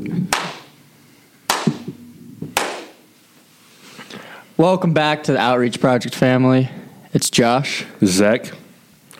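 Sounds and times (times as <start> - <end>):
hand claps: 0.3 - 0.7, 1.5 - 2.0, 2.6 - 3.0
speech: 4.6 - 8.6.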